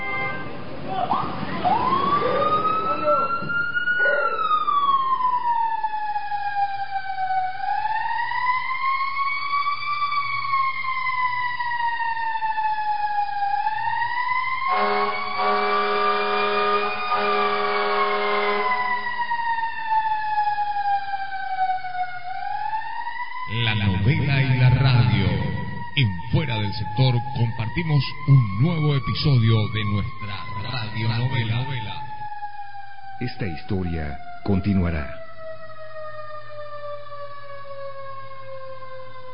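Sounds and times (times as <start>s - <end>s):
fire engine siren: 0.0s - 39.3s
voices: 23.5s - 32.1s.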